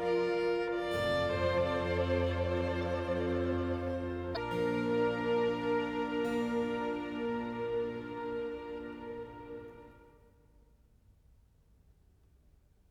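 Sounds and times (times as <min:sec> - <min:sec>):
slow violin concerto movement in G minor: 0:00.0 - 0:10.2.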